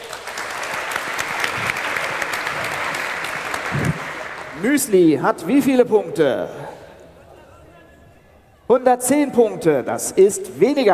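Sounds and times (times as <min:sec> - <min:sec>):
audience applause: 0:00.0 - 0:05.0
speech: 0:04.6 - 0:06.8, 0:08.7 - 0:10.9.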